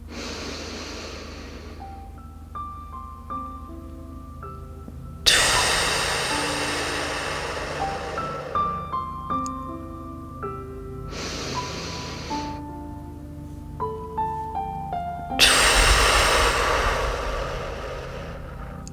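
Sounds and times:
deep breathing in and out during a guided meditation: 0.0s - 2.2s, 5.3s - 9.3s, 11.1s - 12.6s, 15.4s - 18.9s
sustained gentle music tones: 0.0s - 18.9s.

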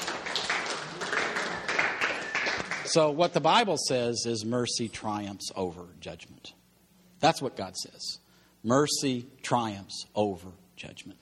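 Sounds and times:
audience clapping: 0.0s - 3.0s
speech: 2.9s - 6.6s, 7.2s - 11.2s.

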